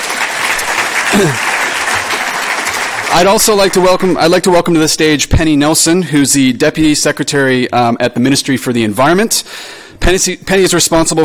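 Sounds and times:
audience applause: 0:00.0 - 0:04.2
speech: 0:01.2 - 0:01.5, 0:03.1 - 0:11.2.

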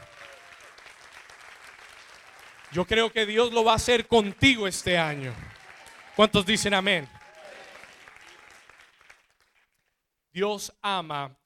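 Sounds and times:
audience applauding: 0:00.0 - 0:10.0
speech: 0:02.7 - 0:05.5, 0:06.2 - 0:07.2, 0:10.4 - 0:11.4.

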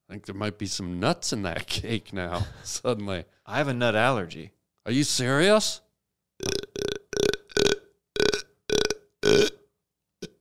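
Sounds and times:
speech: 0:00.1 - 0:05.8, 0:06.4 - 0:06.6
long creaky burp: 0:06.4 - 0:10.3.

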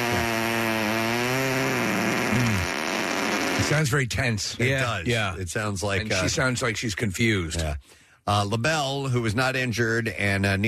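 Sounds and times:
fart sound effect: 0:00.0 - 0:03.8
speech: 0:03.6 - 0:10.6.

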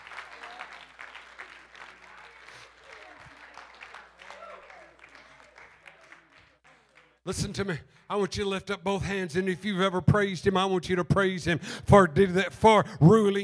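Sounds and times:
audience clapping hands: 0:00.0 - 0:07.3
speech: 0:07.2 - 0:13.4.

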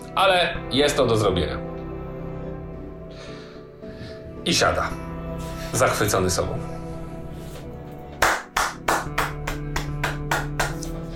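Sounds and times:
speech: 0:00.2 - 0:01.7, 0:04.4 - 0:05.0, 0:05.7 - 0:06.8
hand clapping: 0:08.1 - 0:11.1.

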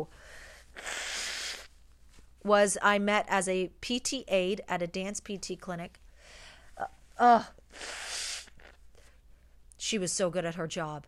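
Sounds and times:
speech: 0:00.0 - 0:01.0, 0:02.4 - 0:06.0, 0:06.8 - 0:08.1, 0:09.8 - 0:11.0
person blowing nose: 0:00.6 - 0:01.8, 0:07.7 - 0:08.8.

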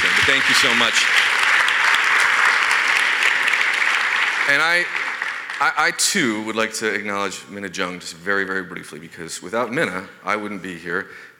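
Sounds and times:
audience applause: 0:00.0 - 0:06.3
speech: 0:00.3 - 0:01.4, 0:04.5 - 0:05.0, 0:05.6 - 0:11.3.

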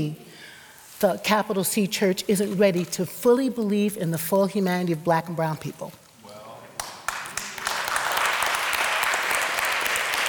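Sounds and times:
speech: 0:00.0 - 0:00.2, 0:01.0 - 0:06.0
crowd applause: 0:06.8 - 0:10.2.

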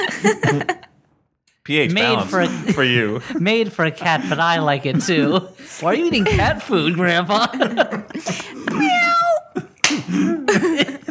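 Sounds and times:
laughter: 0:00.0 - 0:01.0, 0:01.9 - 0:11.0
speech: 0:00.2 - 0:00.8, 0:01.6 - 0:09.0
hand slaps like a high five: 0:09.8 - 0:10.1.

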